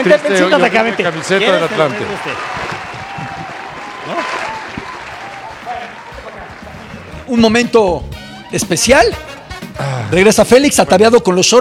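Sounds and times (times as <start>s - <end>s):
speech: 0.0s - 3.3s, 7.3s - 11.5s
audience applause: 0.0s - 7.3s.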